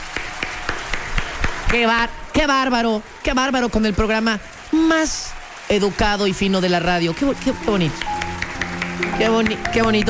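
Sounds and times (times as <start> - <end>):
applause sound effect: 0.0 - 2.0, 4.7 - 10.0
speech: 1.7 - 8.1, 9.0 - 10.0.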